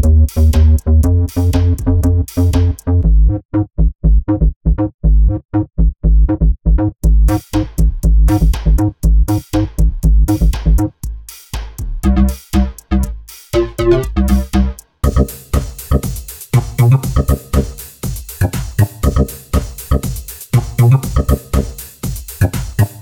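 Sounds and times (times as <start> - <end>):
electro bass: 0.0 - 23.0.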